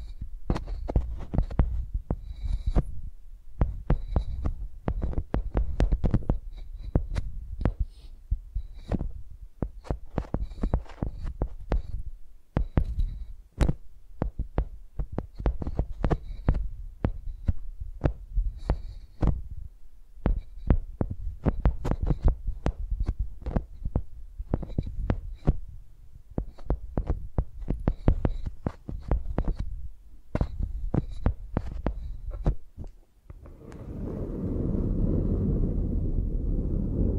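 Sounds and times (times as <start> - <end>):
tapping on microphones used like pencils: 0.0 - 3.0, 3.6 - 7.9, 8.6 - 12.0, 12.6 - 19.5, 20.2 - 25.6, 26.4 - 33.8
low rubbing rumble: 33.3 - 37.1.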